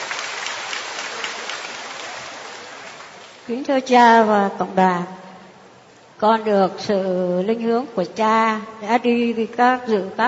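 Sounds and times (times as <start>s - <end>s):
round of applause: 0.0s - 3.5s
speech: 3.5s - 5.2s, 6.2s - 10.2s.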